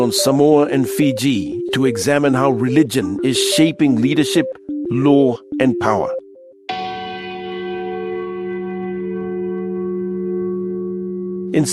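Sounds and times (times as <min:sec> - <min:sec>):
speech: 0:00.0 - 0:06.2, 0:11.5 - 0:11.7
church bells ringing in Apia, Samoa: 0:06.7 - 0:11.7.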